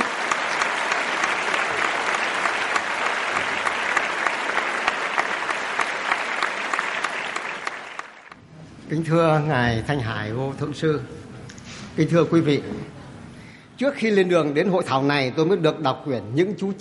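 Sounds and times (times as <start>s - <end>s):
audience applause: 0.0s - 8.4s
speech: 8.9s - 11.2s, 12.0s - 13.0s, 13.8s - 16.7s.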